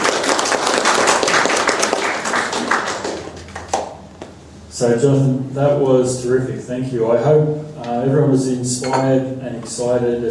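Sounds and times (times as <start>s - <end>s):
audience applause: 0.0s - 3.9s
speech: 4.8s - 10.2s.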